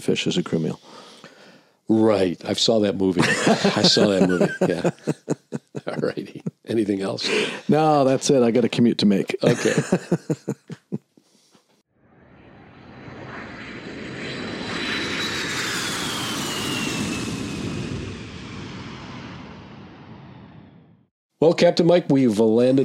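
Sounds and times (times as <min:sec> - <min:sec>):
speech: 0:00.0 - 0:01.1, 0:01.9 - 0:10.8, 0:21.4 - 0:22.8
laughter: 0:03.0 - 0:08.3, 0:09.3 - 0:11.0
airliner jet engines roaring while taxiing to gate: 0:12.2 - 0:20.8.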